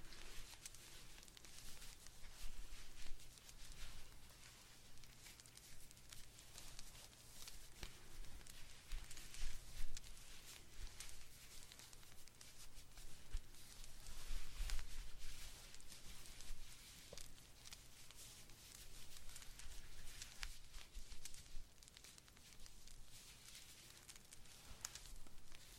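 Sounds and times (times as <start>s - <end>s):
knitting needles and yarn knitting a blanket: 0.0s - 25.7s.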